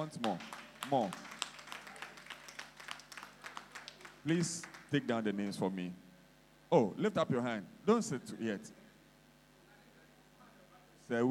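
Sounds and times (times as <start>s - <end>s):
speech: 0.0s - 1.3s, 4.2s - 6.0s, 6.7s - 8.8s, 11.1s - 11.2s
group clapping: 0.0s - 5.2s.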